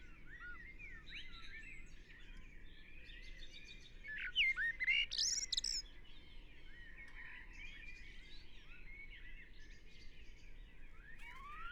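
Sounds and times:
common blackbird singing: 4.1 - 5.8.

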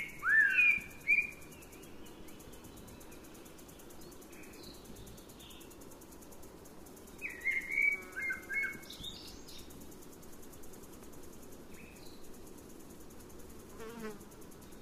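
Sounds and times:
Eurasian blackbird Turdus merula song: 0.0 - 5.7, 7.1 - 9.7.

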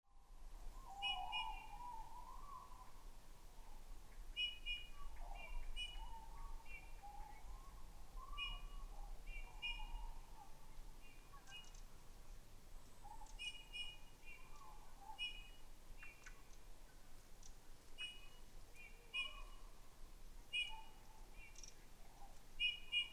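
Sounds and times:
Eurasian bullfinch (Pyrrhula pyrrhula) whistled calls: 0.8 - 2.9, 4.4 - 7.4, 8.2 - 10.2, 13.2 - 16.3, 18.0 - 19.6, 20.5 - 21.7, 22.6 - 23.1.

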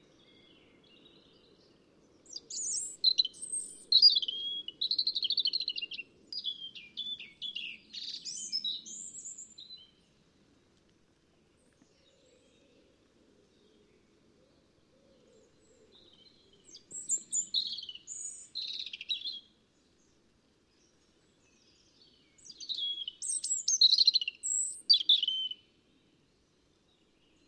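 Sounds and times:
European robin Erithacus rubecula singing: 2.2 - 10.0, 15.1 - 19.6, 20.8 - 25.8.

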